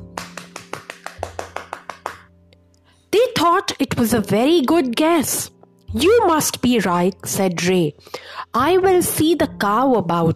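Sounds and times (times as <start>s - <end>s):
group clapping hands: 0.0s - 2.3s
speech: 3.4s - 10.3s.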